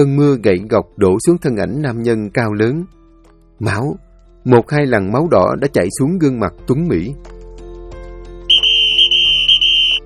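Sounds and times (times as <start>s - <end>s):
speech: 0.0s - 3.0s, 3.6s - 7.4s
security guard's loud horn blast: 8.5s - 10.0s.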